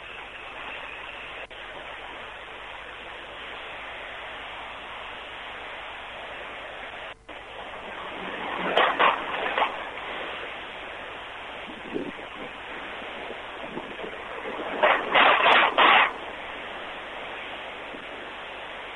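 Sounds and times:
floodwater rushing under a bridge over the Salado river: 7.4s - 18.9s.

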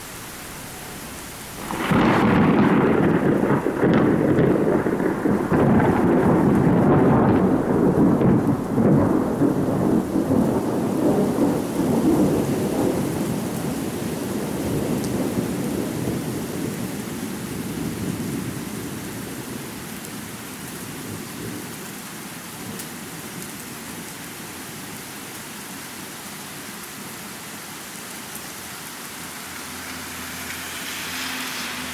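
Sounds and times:
thunderstorm with rain: 0.0s - 31.9s.

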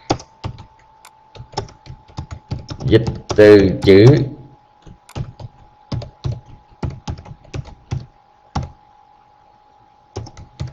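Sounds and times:
typing on a computer keyboard: 0.0s - 4.0s, 4.8s - 8.8s, 10.1s - 10.7s
speech: 2.9s - 4.4s.

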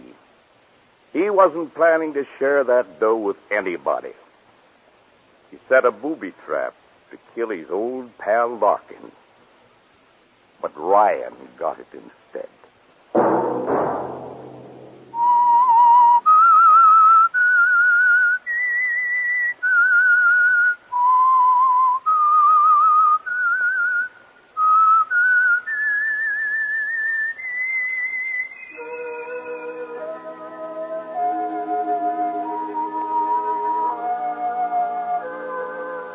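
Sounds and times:
speech: 1.2s - 4.2s, 5.5s - 9.2s, 10.6s - 12.6s
whistled theme tune for an old-time radio drama: 15.1s - 36.1s
soft orchestral music: 28.7s - 36.1s.

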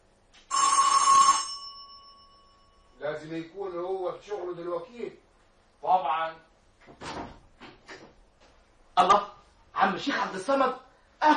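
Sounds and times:
doorbell ringing: 0.5s - 3.0s
speech: 3.0s - 7.3s, 10.0s - 11.3s.

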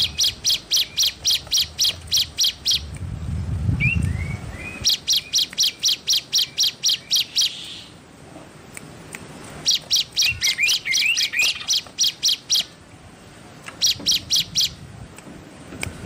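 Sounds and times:
Streaked spiderhunter giving rapid bursts of sharp high clipped notes: 0.0s - 3.0s, 3.8s - 8.0s, 9.6s - 12.8s, 13.7s - 14.8s.

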